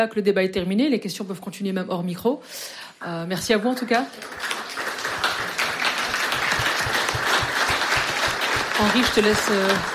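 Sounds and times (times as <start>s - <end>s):
speech: 0.0s - 4.6s, 8.8s - 9.9s
audience applause: 4.1s - 9.9s.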